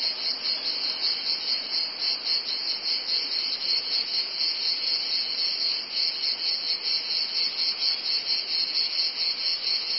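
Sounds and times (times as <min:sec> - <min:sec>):
cicadas producing a high hissing drone: 0:00.0 - 0:09.9.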